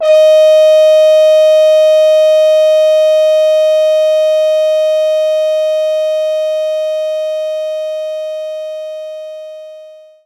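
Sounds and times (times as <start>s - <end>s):
French horn playing note D#4: 0.0s - 7.7s.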